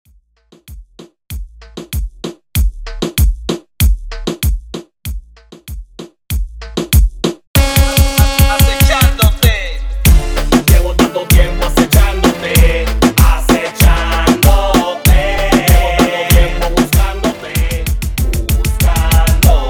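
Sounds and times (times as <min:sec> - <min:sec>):
intro drum break at 96 BPM: 0:00.4 - 0:19.6.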